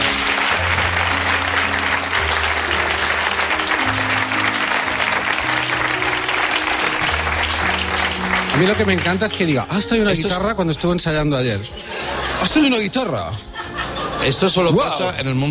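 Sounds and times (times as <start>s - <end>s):
audience applauding: 0.0s - 10.4s
speech: 8.6s - 13.5s, 14.2s - 15.4s
laughter: 11.7s - 15.4s.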